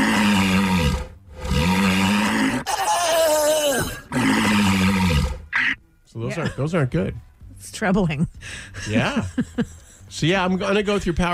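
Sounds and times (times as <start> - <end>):
walruses roaring: 0.0 - 5.8
speech: 6.4 - 11.3
laughter: 8.8 - 10.1.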